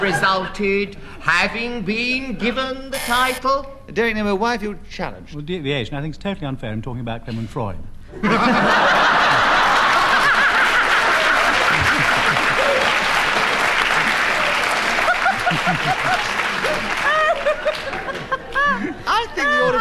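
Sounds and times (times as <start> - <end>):
speech: 0.0 - 9.0
laughter and chuckles: 8.2 - 13.4, 14.8 - 19.8
crowd applauding: 8.6 - 19.8.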